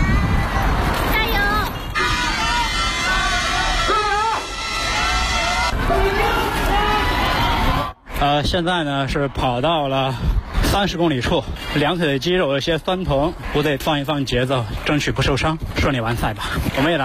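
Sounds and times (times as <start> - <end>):
roadside spectators cheering on marathon runners: 0.0 - 8.2
speech: 8.3 - 17.0.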